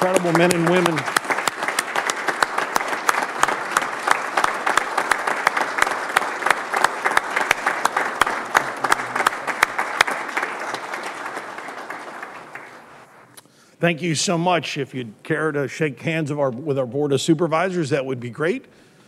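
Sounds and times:
speech: 0.0 - 1.2, 13.8 - 18.9
standing round of applause: 0.0 - 13.2.

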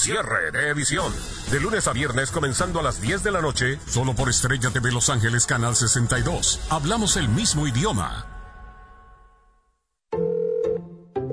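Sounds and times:
speech: 0.0 - 8.3
telephone ringing for a prepaid calling-card call to El Salvador: 10.2 - 11.3.

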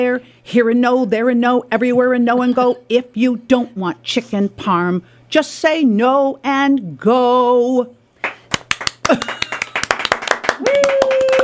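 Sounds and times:
speech: 0.0 - 8.0, 9.1 - 9.4
audience member clapping: 8.2 - 11.4.

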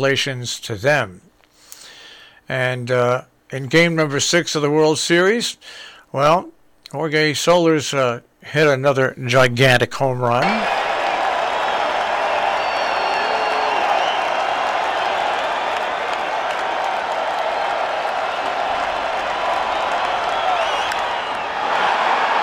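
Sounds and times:
speech: 0.0 - 1.3, 2.5 - 10.8
stadium crowd cheering wildly: 10.4 - 22.4.

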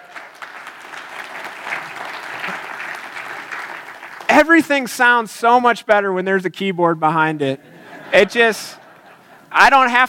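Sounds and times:
audience applause: 0.0 - 4.6
speech: 4.4 - 8.8, 9.5 - 10.0
laughter: 7.6 - 9.6.

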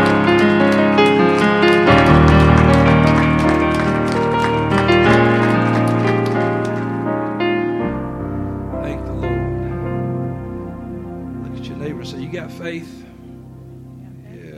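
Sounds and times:
crowd clapping: 0.0 - 7.4
sustained organ-like musical chords: 0.0 - 14.5.

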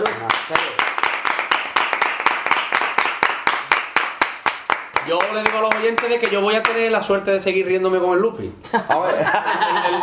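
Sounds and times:
applause: 0.0 - 6.8
speech: 0.5 - 0.7, 5.0 - 10.0
laughter: 8.7 - 10.0.

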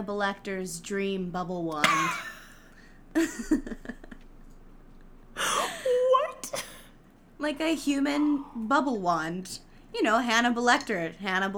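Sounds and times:
speech: 0.0 - 2.4, 3.1 - 4.1, 7.4 - 11.5
cough into the microphone: 1.8 - 2.8, 6.4 - 6.9
laughter: 1.8 - 4.3.

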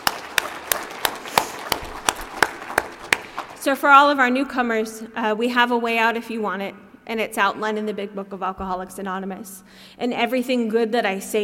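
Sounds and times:
audience clapping in a steady rhythm: 0.0 - 3.8
speech: 3.6 - 11.4.

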